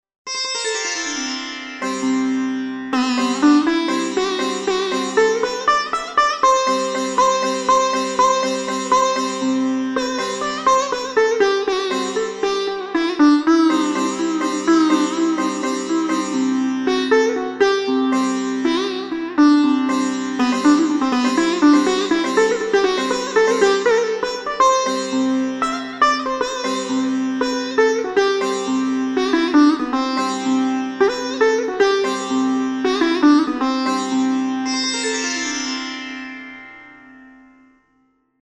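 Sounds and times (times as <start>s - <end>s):
sitar playing raga Yaman: 0.3s - 38.2s.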